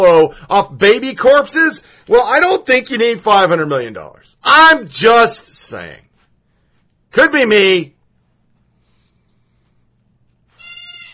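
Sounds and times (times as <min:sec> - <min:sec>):
speech: 0:00.0 - 0:06.0, 0:07.1 - 0:08.0
bird calling: 0:10.6 - 0:11.1.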